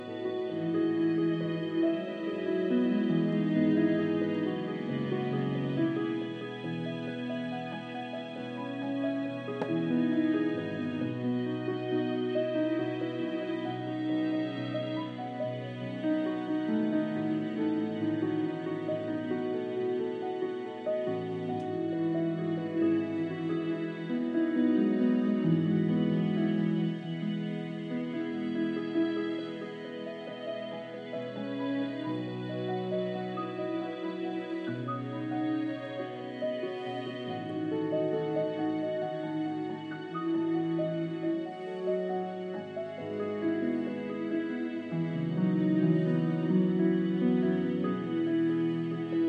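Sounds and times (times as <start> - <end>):
early strings playing: 0.0 - 49.2.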